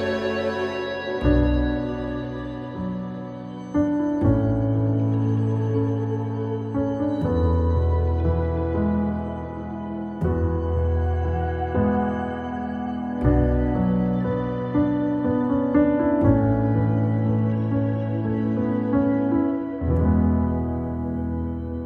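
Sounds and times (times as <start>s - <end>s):
instrumental ambient music: 0.0s - 21.8s.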